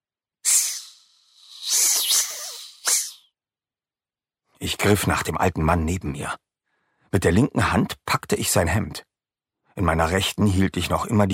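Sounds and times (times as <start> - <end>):
sharp airy hisses: 0.4 - 3.3
speech: 4.6 - 6.5, 7.1 - 9.1, 9.8 - 11.3.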